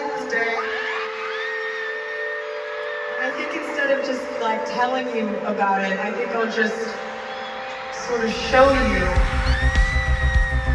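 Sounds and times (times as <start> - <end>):
audience cheering and screaming: 0.0 - 4.4, 6.0 - 10.7
high-pitched shrieks and whoops: 0.3 - 3.4, 7.1 - 10.7
speech: 3.9 - 7.1, 8.0 - 9.8.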